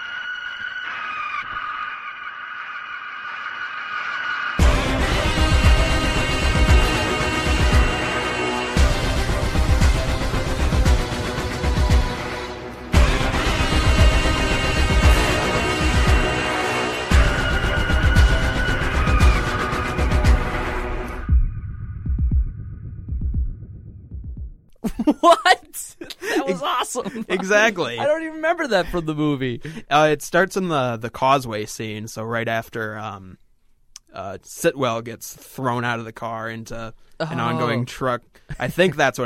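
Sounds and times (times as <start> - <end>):
harsh sustained screeching cry: 0.0 - 4.6
loud aggressive film score: 0.0 - 26.4
heavy pounding percussion: 4.6 - 20.6, 21.3 - 24.6
laughter: 24.8 - 29.9, 37.3 - 37.8, 38.5 - 39.1
speech: 27.0 - 33.4, 34.1 - 39.2.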